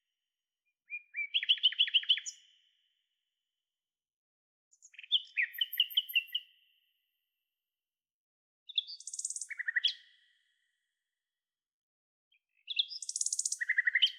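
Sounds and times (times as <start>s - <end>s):
common nightingale singing: 0.9s - 2.5s, 4.9s - 6.5s, 8.7s - 10.0s, 12.7s - 14.1s.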